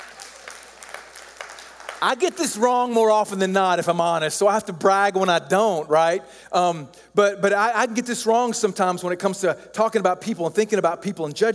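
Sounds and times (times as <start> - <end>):
audience clapping: 0.0 - 3.5
speech: 2.0 - 11.5.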